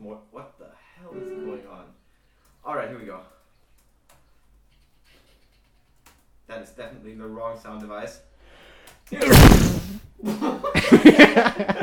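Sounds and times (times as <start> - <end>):
speech: 6.7 - 8.3, 9.1 - 11.8
person sneezing: 9.2 - 10.1.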